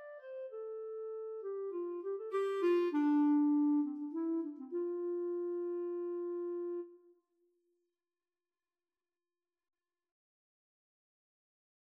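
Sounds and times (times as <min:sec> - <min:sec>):
clarinet duet: 0:00.0 - 0:07.1.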